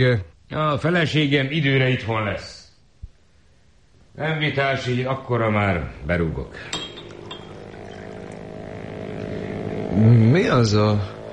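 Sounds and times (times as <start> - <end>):
speech: 0.0 - 2.6, 4.2 - 6.9, 10.0 - 11.2
motorboat engine droning on a lake: 6.4 - 11.3.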